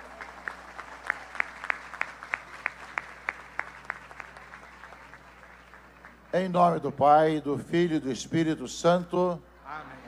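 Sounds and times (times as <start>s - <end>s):
applause for the cardinal: 0.0s - 6.3s
speech: 6.4s - 9.9s.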